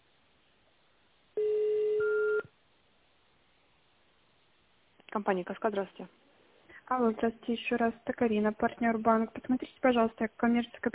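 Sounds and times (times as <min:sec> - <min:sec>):
electronic telephone tone: 0:01.4 - 0:02.5
speech: 0:05.2 - 0:06.2, 0:06.9 - 0:10.9.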